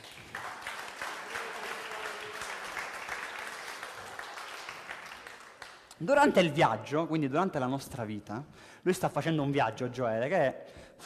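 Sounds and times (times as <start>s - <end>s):
audience applause: 0.0s - 5.9s
speech: 6.0s - 11.0s.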